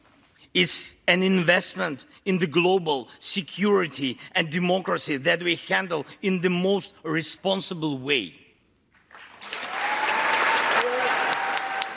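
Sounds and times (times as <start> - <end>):
speech: 0.5 - 8.4
applause from played recording: 9.0 - 11.9.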